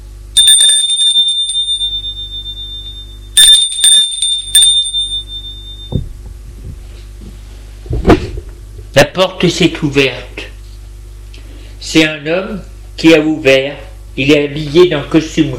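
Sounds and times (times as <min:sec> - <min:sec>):
doorbell ringing: 0:00.4 - 0:06.0
speech: 0:09.0 - 0:10.4, 0:11.8 - 0:15.5.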